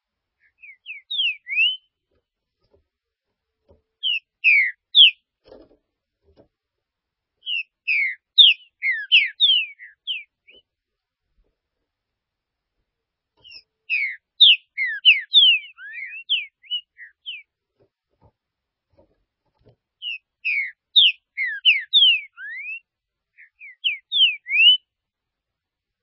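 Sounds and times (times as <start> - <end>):
green-winged saltator singing whistled phrases: 0.4 - 1.9, 4.0 - 5.2, 7.4 - 10.6, 13.4 - 17.5, 20.0 - 24.9.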